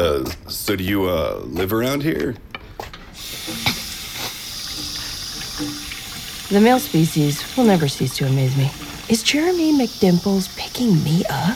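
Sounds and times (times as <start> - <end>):
speech: 0.0 - 2.5, 5.6 - 5.8, 6.5 - 11.5
water running from a sink tap: 3.2 - 11.5.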